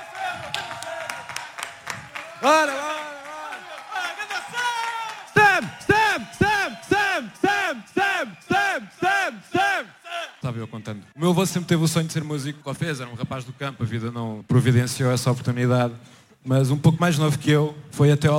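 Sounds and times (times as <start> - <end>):
audience applause: 0.0 - 10.6
speech: 2.4 - 2.9, 10.6 - 18.3.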